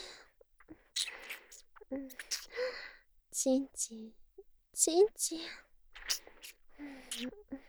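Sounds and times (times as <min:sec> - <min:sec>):
kissing sounds: 0:00.7 - 0:02.6, 0:05.9 - 0:07.4.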